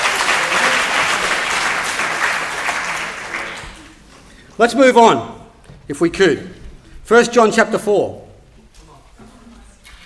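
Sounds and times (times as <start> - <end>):
round of applause: 0.0 - 4.1
speech: 4.6 - 8.2.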